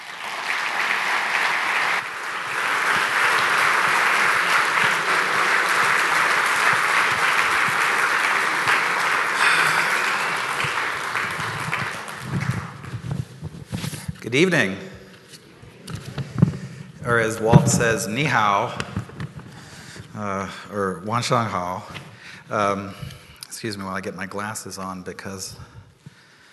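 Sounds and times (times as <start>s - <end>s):
audience applause welcoming a speaker at a seminar evening in Steamboat: 0.0s - 13.2s
speech: 14.4s - 14.8s, 17.2s - 18.9s, 20.2s - 25.7s.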